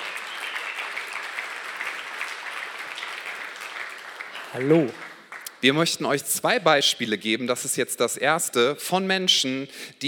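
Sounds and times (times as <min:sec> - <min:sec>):
crowd applause: 0:00.0 - 0:05.8
speech: 0:04.5 - 0:10.0.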